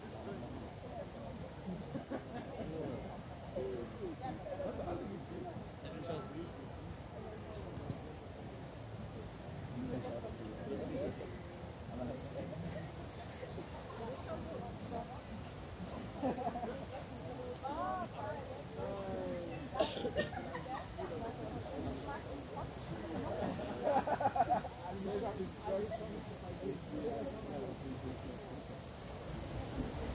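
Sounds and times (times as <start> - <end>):
many overlapping voices in Munich's Englischer Garten: 0.0 - 30.1
laughter: 1.6 - 3.2, 15.9 - 17.0, 19.6 - 21.2, 23.0 - 26.2.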